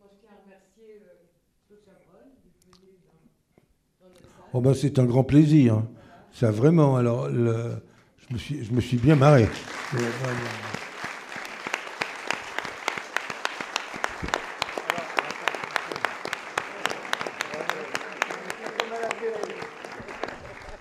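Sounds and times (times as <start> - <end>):
speech: 0.9 - 3.4, 4.0 - 10.8
crowd applause: 8.4 - 20.7.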